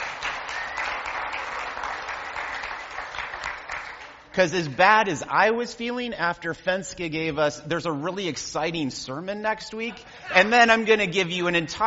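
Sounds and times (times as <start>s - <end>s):
audience round of applause: 0.0s - 4.6s
speech: 4.4s - 11.8s.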